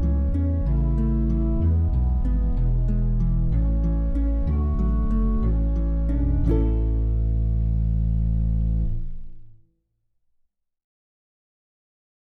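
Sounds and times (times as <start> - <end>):
backing music: 0.0 - 8.7.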